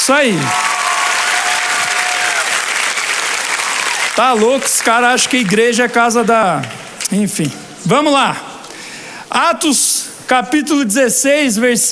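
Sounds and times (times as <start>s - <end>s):
speech: 0.0s - 0.8s, 4.2s - 8.5s, 9.3s - 11.8s
church audience applauding: 0.0s - 6.8s.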